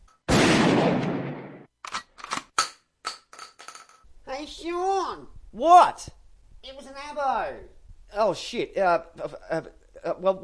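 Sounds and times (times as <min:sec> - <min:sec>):
gunshot fired at something in a backyard: 0:00.3 - 0:01.7
speech: 0:04.4 - 0:10.4.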